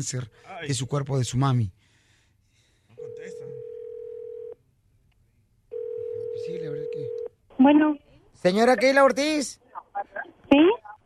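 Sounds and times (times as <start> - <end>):
speech: 0.0 - 1.9, 6.5 - 10.8
phone call ringback tones: 3.0 - 4.6, 5.7 - 7.3.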